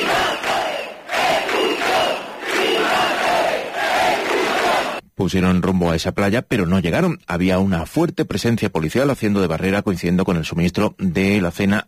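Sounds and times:
protesters cheering: 0.0 - 5.0
speech: 5.2 - 11.8.

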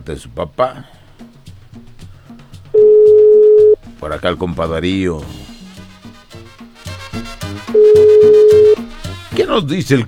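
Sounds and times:
speech: 0.0 - 1.0, 4.0 - 5.5, 9.4 - 10.0
steady ringing tone of an outgoing telephone call: 2.8 - 3.8, 7.8 - 8.8.

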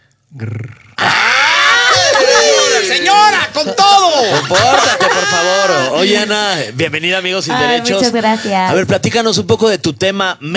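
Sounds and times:
speech: 0.3 - 0.7, 6.0 - 10.5
voice imitating a growl: 0.3 - 2.6
laughter: 1.1 - 6.4.

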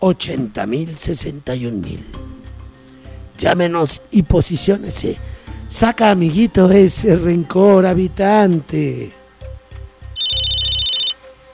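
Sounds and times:
speech: 0.0 - 2.2, 3.4 - 9.2
telephone ringing with an incoming call: 10.2 - 11.2.

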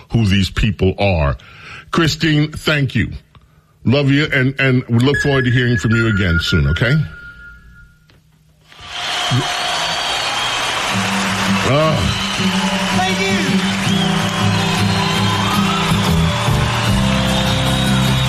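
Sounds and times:
speech: 0.2 - 7.2, 9.3 - 9.6
live concert crowd applause: 8.7 - 18.2.

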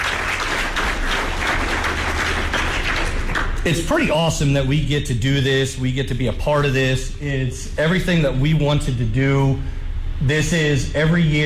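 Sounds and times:
audience applause: 0.0 - 3.6
speech: 3.6 - 11.4.

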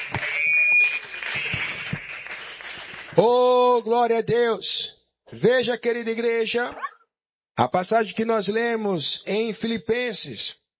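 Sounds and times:
audience clapping: 0.0 - 3.9
speech: 3.2 - 6.8, 7.6 - 10.7.

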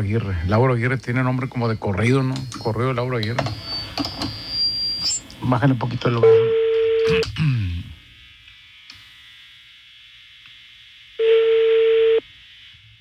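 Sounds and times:
speech: 0.0 - 4.4, 5.4 - 7.6
telephone ringing on outgoing call: 6.2 - 7.2, 11.2 - 12.2.

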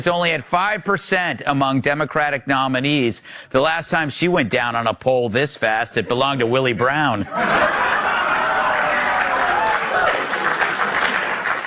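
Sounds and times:
speech: 0.0 - 8.2
laughter: 6.0 - 11.6
crowd applause: 7.3 - 11.6
scattered cheers: 7.6 - 11.6.

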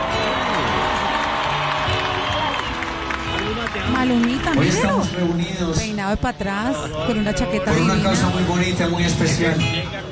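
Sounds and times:
crowd shouting and whooping: 0.0 - 5.2
large crowd applauding: 0.0 - 5.9
speech: 4.0 - 10.1.

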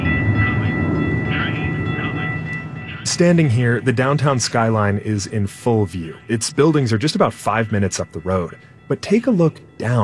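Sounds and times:
light rail train arriving: 0.0 - 10.0
thin metallic tones ringing: 0.0 - 10.0
speech: 3.2 - 10.0.

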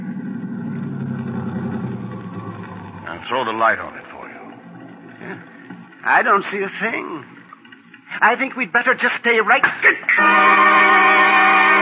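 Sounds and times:
car engine idling: 0.0 - 7.1
speech: 3.3 - 4.1, 5.3 - 7.4, 8.2 - 11.0.

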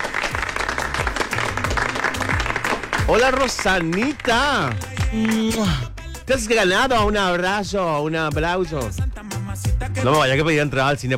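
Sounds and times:
small crowd applauding an arriving guest: 0.0 - 6.1
speech: 3.1 - 9.1, 10.0 - 11.1.

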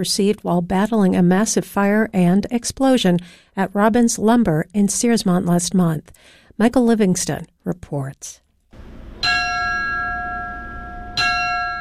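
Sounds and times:
speech: 0.0 - 8.4
fire department last alarm bell ringing: 9.2 - 11.7.

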